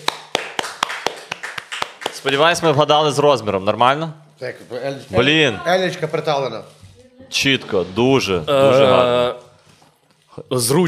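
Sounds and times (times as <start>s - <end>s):
audience applause: 0.0s - 2.9s
speech: 2.2s - 9.4s, 10.4s - 10.8s.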